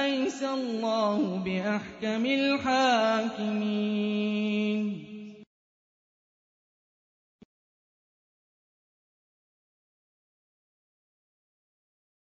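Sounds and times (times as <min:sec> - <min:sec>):
Quran recitation: 0:00.0 - 0:05.5.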